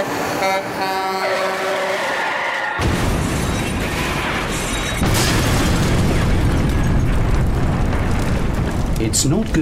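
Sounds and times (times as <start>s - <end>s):
blaring horn-like tone: 0.0s - 2.6s
truck loaded with dynamite exploding: 2.8s - 9.6s.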